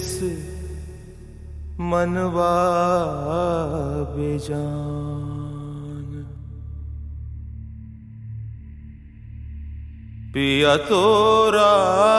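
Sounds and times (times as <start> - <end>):
man singing: 0.0 - 1.2, 1.8 - 6.6, 10.3 - 12.1.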